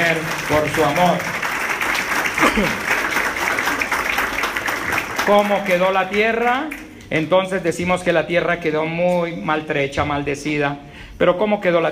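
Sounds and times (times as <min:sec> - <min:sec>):
speech: 0:00.0 - 0:01.4, 0:02.4 - 0:02.9, 0:05.3 - 0:11.8
audience applause: 0:00.0 - 0:06.8.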